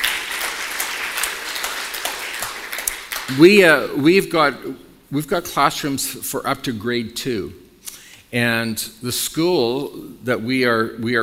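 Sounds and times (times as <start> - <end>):
audience applause: 0.0 - 3.6
speech: 3.3 - 7.6, 8.3 - 11.2.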